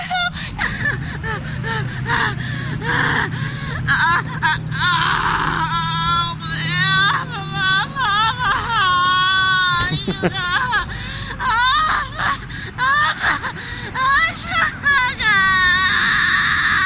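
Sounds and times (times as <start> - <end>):
woman gasping and whimpering: 0.0 - 6.0, 10.6 - 14.0
woman screaming and wailing without words: 0.0 - 16.8
laughter: 6.8 - 13.5.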